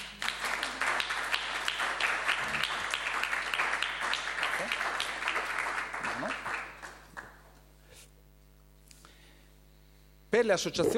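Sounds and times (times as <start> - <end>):
audience applause: 0.0 - 7.4
speech: 10.4 - 10.9.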